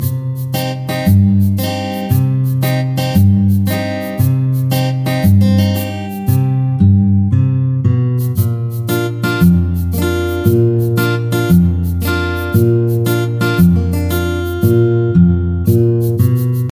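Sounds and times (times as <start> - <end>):
song: 0.0 - 7.4, 8.2 - 16.7.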